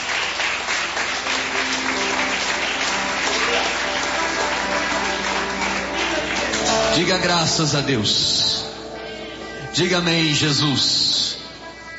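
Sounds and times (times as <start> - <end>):
audience clapping hands: 0.0 - 7.7
speech: 7.0 - 8.6, 9.8 - 11.1.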